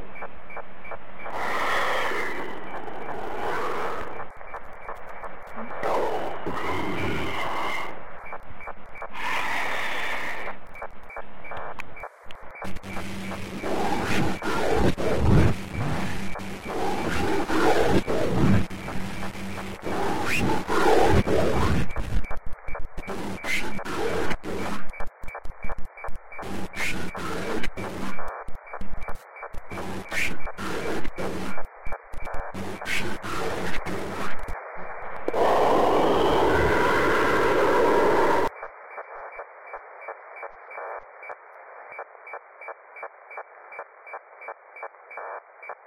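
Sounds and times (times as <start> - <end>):
sinister radio sound: 1.3 - 22.3, 22.9 - 25.0, 26.3 - 28.3, 29.5 - 31.7, 32.3 - 38.5.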